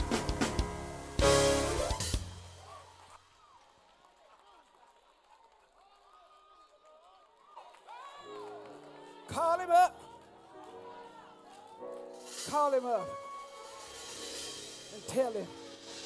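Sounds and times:
audience clapping and cheering in praise: 0:00.0 - 0:14.1
speech: 0:12.5 - 0:13.2, 0:15.0 - 0:15.6.

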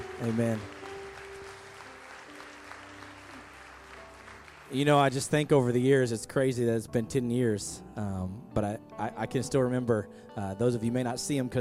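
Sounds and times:
audience applause: 0:00.0 - 0:05.6
speech: 0:00.2 - 0:00.8, 0:04.7 - 0:11.6.

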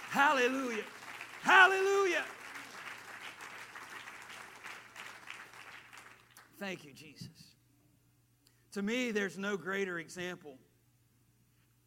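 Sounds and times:
audience clapping: 0:00.0 - 0:06.6
speech: 0:00.1 - 0:02.4, 0:06.6 - 0:07.4, 0:08.7 - 0:10.7.

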